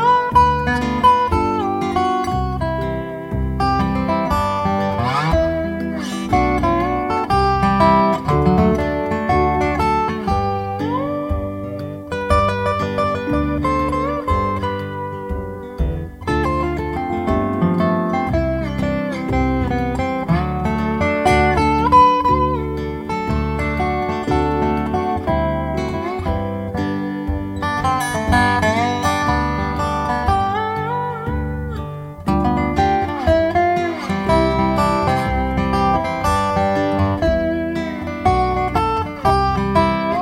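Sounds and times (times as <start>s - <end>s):
steel guitar strings in EBDGBD tuning: 0.0s - 40.2s.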